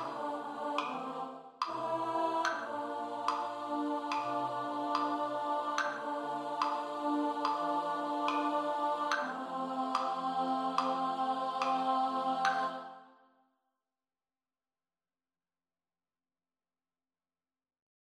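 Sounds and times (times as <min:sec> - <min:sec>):
alto study: 0:00.0 - 0:13.1.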